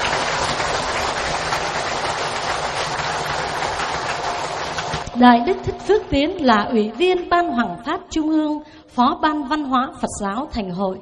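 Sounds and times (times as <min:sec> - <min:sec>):
audience applause: 0:00.0 - 0:06.1
speech: 0:05.2 - 0:11.0.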